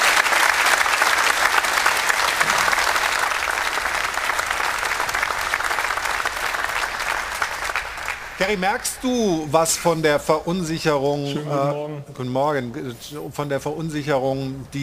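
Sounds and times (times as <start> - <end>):
applause: 0.0 - 9.3
speech: 8.4 - 14.8.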